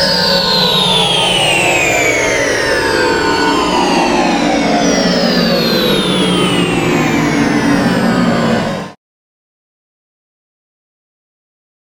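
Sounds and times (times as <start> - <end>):
flying saucer Halloween sound effect: 0.0 - 9.0.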